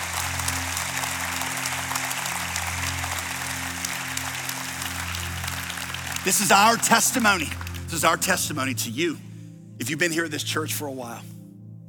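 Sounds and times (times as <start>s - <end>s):
audience clapping hands: 0.0s - 8.4s
speech: 6.2s - 11.4s.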